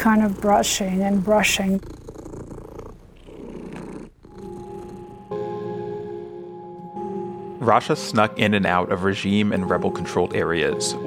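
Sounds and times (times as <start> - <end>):
speech: 0.0 - 2.0, 7.6 - 11.0
cat purring: 0.0 - 8.2.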